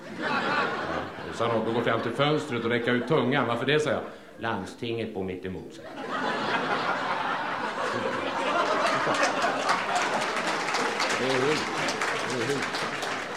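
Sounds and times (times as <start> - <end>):
laughter: 0.0 - 3.6, 5.8 - 13.3
speech: 1.4 - 7.0, 12.4 - 13.0
audience applause: 7.2 - 13.3.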